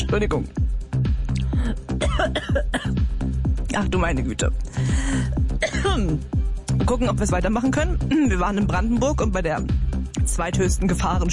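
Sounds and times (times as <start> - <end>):
speech: 0.1 - 0.7, 1.6 - 3.1, 3.8 - 11.3
coughing after choking on something swallowed: 1.5 - 3.1, 4.8 - 6.2.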